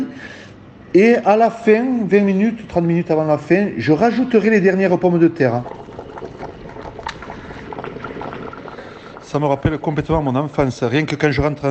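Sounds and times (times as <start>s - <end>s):
speech: 0.2s - 5.9s, 9.3s - 11.6s
pot of garbure stew with leeks, carrots, cabbage, onion and garlic boiling: 4.3s - 11.6s.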